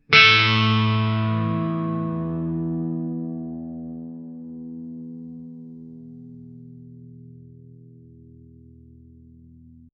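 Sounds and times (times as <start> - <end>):
acoustic guitar playing two notes: 0.0 - 6.9.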